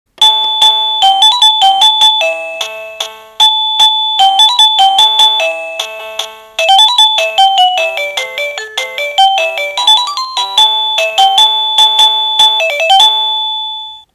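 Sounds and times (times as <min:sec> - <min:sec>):
melody: 0:00.2 - 0:14.1.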